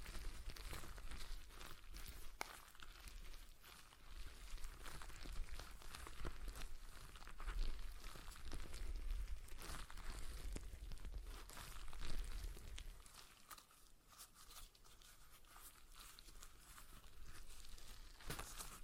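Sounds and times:
stress ball squishing and crinkling as squeezed: 0.0 - 18.8.

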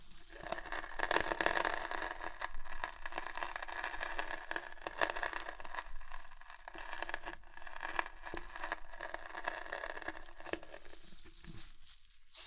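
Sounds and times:
chips crunching and crushing: 0.2 - 11.3.

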